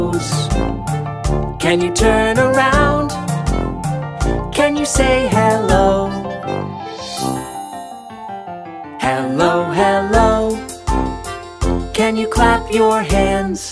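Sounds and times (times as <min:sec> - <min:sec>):
children's song: 0:00.0 - 0:00.9, 0:01.6 - 0:03.8, 0:04.4 - 0:07.6, 0:09.0 - 0:11.1, 0:11.8 - 0:13.7.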